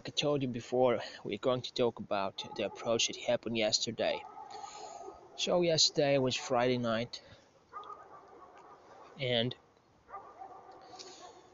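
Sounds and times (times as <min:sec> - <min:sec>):
speech: 0:00.2 - 0:04.6, 0:05.4 - 0:07.4, 0:09.2 - 0:09.6
dogs barking outdoors: 0:02.4 - 0:03.2, 0:04.0 - 0:05.7, 0:07.7 - 0:09.3, 0:10.1 - 0:11.5.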